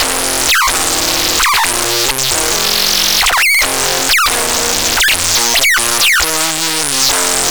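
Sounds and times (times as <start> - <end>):
guitar: 0.0 - 7.5.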